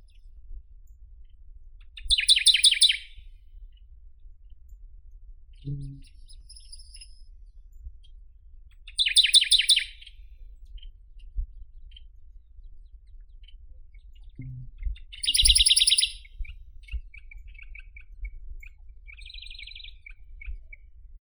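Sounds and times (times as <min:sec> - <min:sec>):
Radde's warbler Phylloscopus schwarzi singing: 0:02.1 - 0:03.1, 0:09.0 - 0:10.1, 0:14.4 - 0:18.0, 0:19.1 - 0:20.2.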